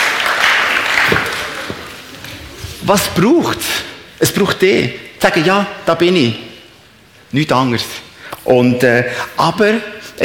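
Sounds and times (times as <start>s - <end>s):
audience applause: 0.0s - 2.5s
speech: 2.9s - 6.5s, 7.3s - 10.2s.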